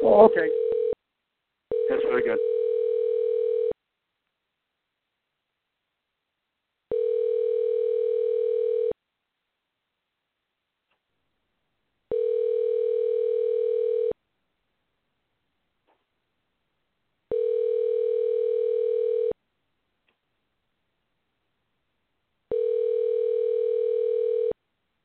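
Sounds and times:
ringing tone on a telephone line while placing a call: 0.1s - 1.0s, 1.7s - 3.8s, 6.9s - 9.0s, 12.1s - 14.2s, 17.3s - 19.4s, 22.5s - 24.6s
speech: 0.2s - 0.6s, 2.1s - 2.5s.

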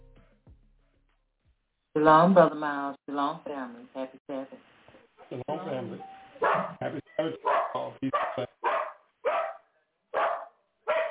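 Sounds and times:
speech: 2.0s - 4.7s, 5.3s - 8.5s
dog barking: 6.4s - 11.0s.

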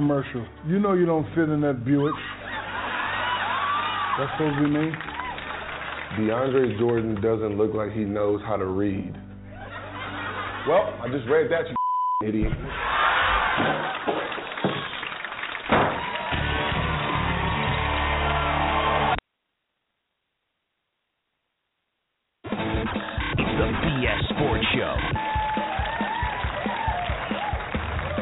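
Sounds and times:
speech: 0.0s - 2.4s, 4.2s - 5.1s, 6.1s - 9.2s, 10.6s - 13.0s, 13.6s - 14.0s
laughter: 1.9s - 7.2s, 9.5s - 11.8s, 12.6s - 15.2s
bar crowd applause: 2.4s - 7.5s, 12.7s - 19.2s, 22.5s - 28.2s.

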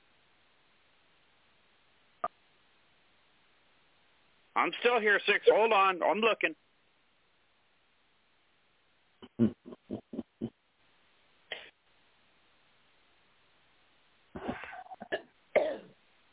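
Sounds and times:
speech: 4.6s - 6.6s
person coughing and choking a little: 14.4s - 15.9s.

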